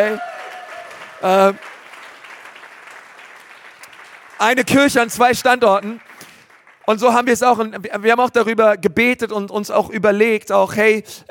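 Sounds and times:
speech: 0.0 - 0.3, 1.2 - 1.7, 4.4 - 6.1, 6.9 - 11.2
audience applause: 0.0 - 6.9.

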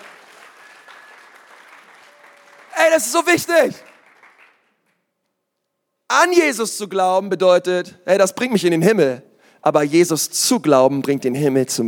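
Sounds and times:
audience clapping: 0.0 - 5.1
speech: 2.9 - 3.9, 6.2 - 11.8.

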